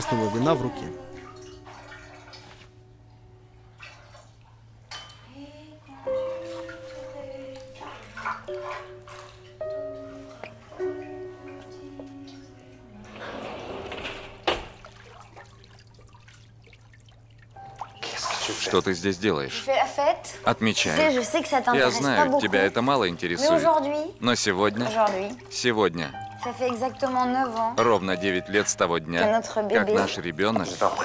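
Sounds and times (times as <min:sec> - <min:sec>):
speech: 0:00.0 - 0:01.2, 0:18.8 - 0:31.0
blood dripping into bath water: 0:00.0 - 0:05.4, 0:06.1 - 0:12.9, 0:14.5 - 0:23.4, 0:24.1 - 0:29.2
frosted shower door sliding open: 0:13.0 - 0:15.0.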